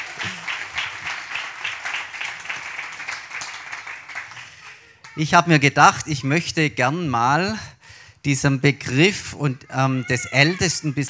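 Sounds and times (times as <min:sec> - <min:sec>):
audience applause: 0:00.0 - 0:05.2
speech: 0:05.2 - 0:11.0.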